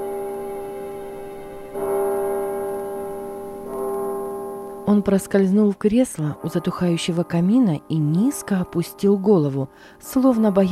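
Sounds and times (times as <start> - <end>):
clock from the Netherlands striking twelve: 0.0 - 8.5
speech: 4.9 - 10.6.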